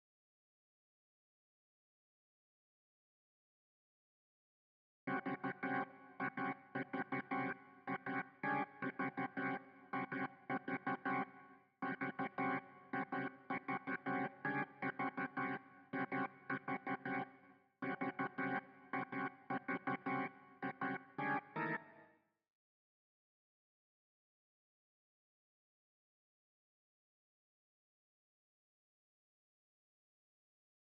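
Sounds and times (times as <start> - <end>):
synths and keys: 5.1 - 22.1.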